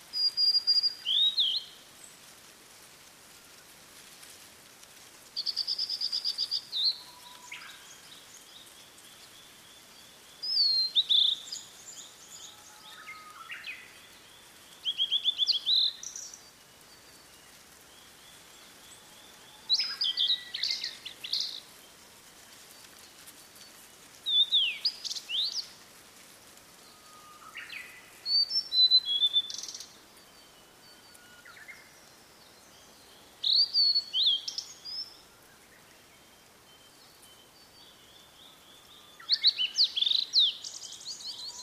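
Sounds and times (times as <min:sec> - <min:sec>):
Blue-and-white flycatcher song: 0:00.2 - 0:01.8, 0:05.4 - 0:07.9, 0:10.4 - 0:13.9, 0:14.8 - 0:16.4, 0:24.3 - 0:25.7, 0:26.9 - 0:29.9, 0:33.4 - 0:35.1, 0:38.9 - 0:41.6.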